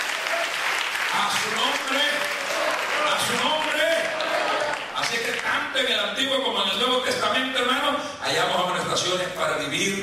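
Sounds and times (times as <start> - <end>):
faint voices and cheers: 0.0 - 5.0
audience applause: 0.0 - 5.5
speech: 1.1 - 3.7, 5.0 - 10.0.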